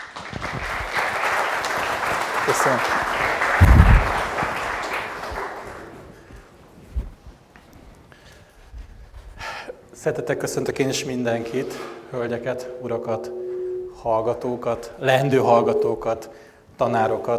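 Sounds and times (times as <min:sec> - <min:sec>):
audience applause: 0:00.0 - 0:06.1
speech: 0:02.5 - 0:03.9, 0:10.0 - 0:13.4, 0:14.0 - 0:17.3.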